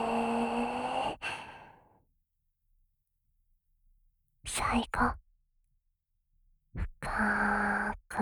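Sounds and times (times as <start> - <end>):
deep breathing in and out during a guided breathing exercise: 1.0 - 1.8
speech: 4.7 - 5.2, 6.8 - 8.2.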